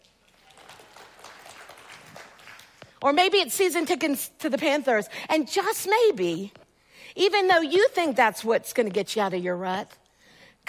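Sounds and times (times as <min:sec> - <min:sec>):
audience clapping: 0:00.0 - 0:03.0
speech: 0:03.0 - 0:10.0.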